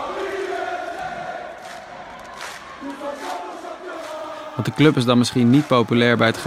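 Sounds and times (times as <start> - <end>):
large crowd of football supporters chanting: 0.0 - 6.4
speech: 4.6 - 6.4.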